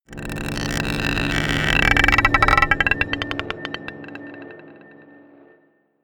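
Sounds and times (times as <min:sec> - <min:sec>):
scraping a marble pot: 0:00.1 - 0:04.8
dark drones: 0:00.1 - 0:05.8.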